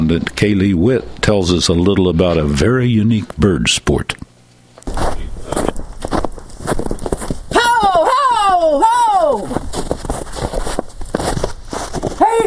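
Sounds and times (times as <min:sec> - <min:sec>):
speech: 0:00.1 - 0:04.3
footsteps walking through snow: 0:04.9 - 0:08.2, 0:08.9 - 0:12.4.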